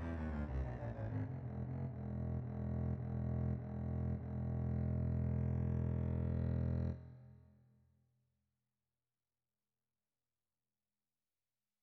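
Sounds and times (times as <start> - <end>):
contrabass playing an allegro suite: 0.1 - 7.0.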